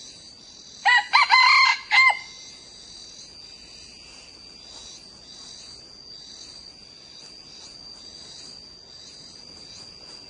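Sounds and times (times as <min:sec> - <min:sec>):
high-pitched insect buzzing: 0:00.0 - 0:10.2
red junglefowl crowing: 0:00.8 - 0:02.5.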